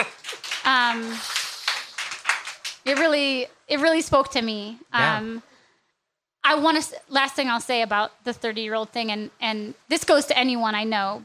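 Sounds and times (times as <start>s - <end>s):
crowd clapping: 0.0s - 3.2s
speech: 0.7s - 1.4s, 2.9s - 5.5s, 6.5s - 11.2s.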